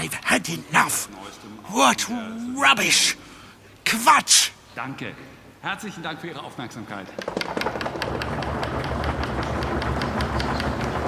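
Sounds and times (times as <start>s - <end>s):
speech: 0.1s - 3.3s, 3.9s - 7.8s
hands knocking on wooden desks as applause: 7.2s - 11.0s.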